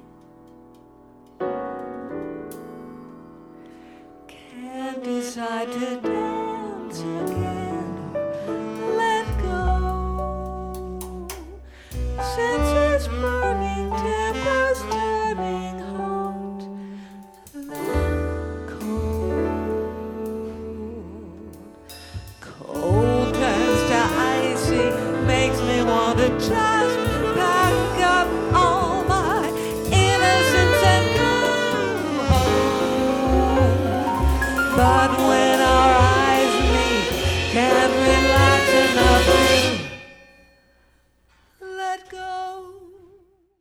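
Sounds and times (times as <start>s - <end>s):
tango music: 5.2s - 40.0s.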